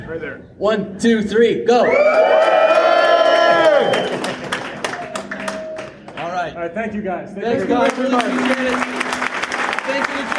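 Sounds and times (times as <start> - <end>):
speech: 0.1 - 2.6, 6.6 - 8.9
crowd cheering with high-pitched shouts and whoops: 1.8 - 6.0
scattered hand claps: 3.6 - 6.3, 7.8 - 10.3.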